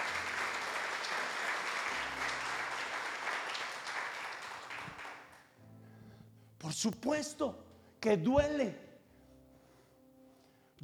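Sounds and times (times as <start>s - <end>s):
audience applause: 0.0s - 5.5s
speech: 6.7s - 8.8s.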